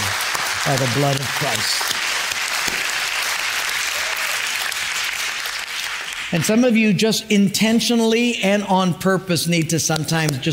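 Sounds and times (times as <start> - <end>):
audience clapping: 0.0 - 6.9
speech: 0.7 - 2.0, 6.3 - 10.5.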